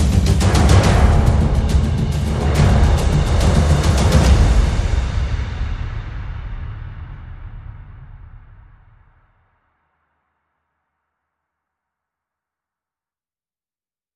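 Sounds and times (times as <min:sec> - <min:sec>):
percussion: 0:00.0 - 0:09.6.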